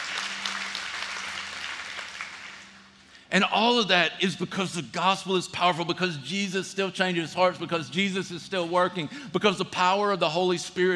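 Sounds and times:
audience clapping: 0:00.0 - 0:03.0
speech: 0:03.3 - 0:10.9.

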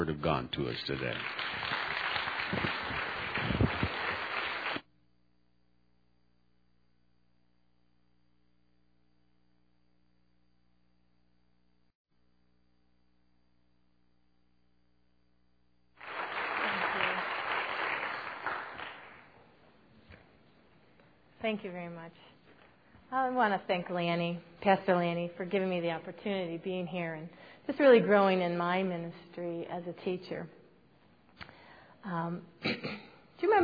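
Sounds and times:
church congregation standing and applauding a guest speaker: 0:00.0 - 0:04.8, 0:16.0 - 0:19.6
speech: 0:00.2 - 0:01.8, 0:02.5 - 0:03.6, 0:21.6 - 0:22.4, 0:23.1 - 0:30.6, 0:32.0 - 0:33.6.

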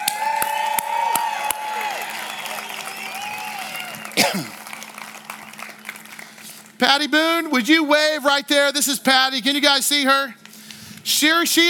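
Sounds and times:
audience cheering and applauding: 0:00.0 - 0:06.8
speech: 0:06.8 - 0:10.4, 0:11.1 - 0:11.6.

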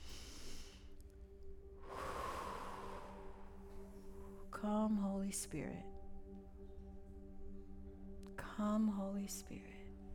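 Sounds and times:
faint sustained musical tones: 0:00.0 - 0:10.1
worship gathering drawing a deep breath together: 0:01.8 - 0:04.4
speech: 0:04.6 - 0:05.9, 0:08.6 - 0:09.8.

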